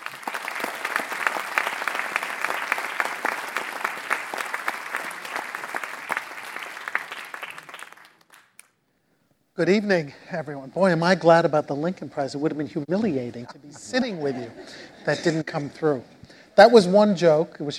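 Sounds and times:
crowd applauding welcoming speakers: 0.0 - 8.7
speech: 9.6 - 17.7
laughter: 13.1 - 15.7.

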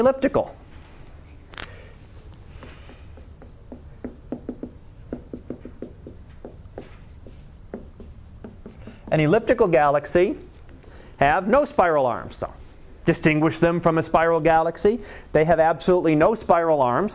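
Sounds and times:
speech: 0.0 - 0.6, 9.1 - 10.5, 11.2 - 17.1
chalk spiral drawings wiped from a board: 2.2 - 10.8.

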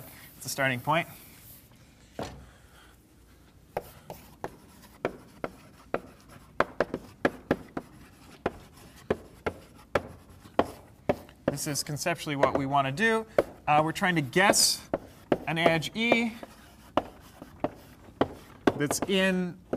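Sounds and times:
speech: 0.4 - 1.3, 2.2 - 2.4, 11.6 - 16.5, 18.8 - 19.6
handwriting on a surface during a lecture on greedy algorithms: 3.8 - 11.7, 14.3 - 19.7.

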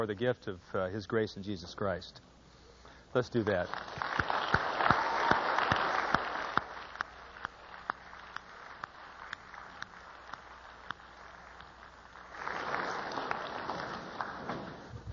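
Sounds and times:
speech: 0.0 - 2.3, 3.1 - 4.6
crowd applause: 3.6 - 15.0.

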